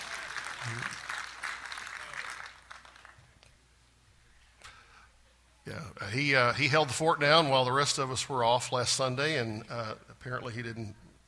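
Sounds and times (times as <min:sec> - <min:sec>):
audience clapping hands: 0:00.0 - 0:03.6, 0:06.4 - 0:07.9
speech: 0:00.6 - 0:01.0, 0:05.7 - 0:11.0.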